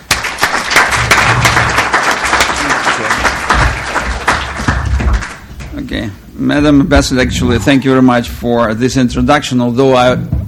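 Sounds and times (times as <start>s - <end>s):
audience applause welcoming an ambassador: 0.0s - 5.7s
speech: 5.9s - 10.4s.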